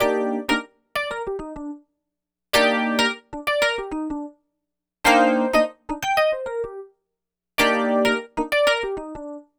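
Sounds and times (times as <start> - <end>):
electric piano: 0.0 - 1.8, 2.6 - 4.3, 5.1 - 6.9, 7.6 - 9.4.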